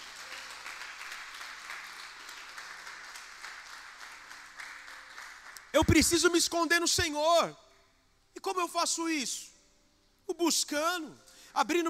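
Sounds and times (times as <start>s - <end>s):
audience applauding: 0.0s - 5.9s
speech: 5.8s - 7.6s, 8.4s - 9.5s, 10.3s - 11.8s.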